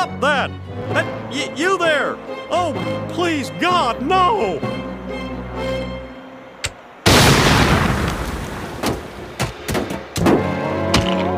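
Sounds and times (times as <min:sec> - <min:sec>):
speech: 0:00.2 - 0:05.9
explosion of a smoked turkey: 0:07.1 - 0:09.3
sharp thuds and cracks: 0:07.1 - 0:11.3.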